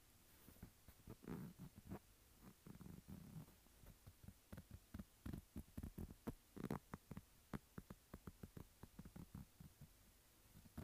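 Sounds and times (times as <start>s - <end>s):
fingers scratching a textured phone case: 1.0s - 9.8s, 10.6s - 10.8s.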